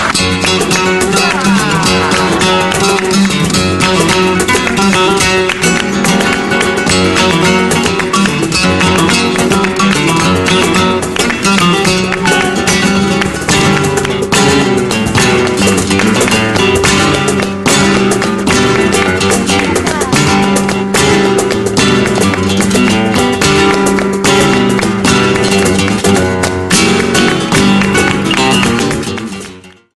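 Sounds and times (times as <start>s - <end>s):
flamenco music: 0.0s - 29.9s
laughter: 0.7s - 3.5s.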